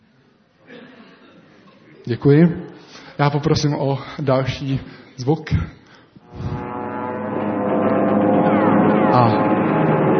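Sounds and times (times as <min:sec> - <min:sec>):
speech: 0:02.0 - 0:02.6, 0:03.2 - 0:05.8
aircraft engine drone: 0:06.2 - 0:10.1.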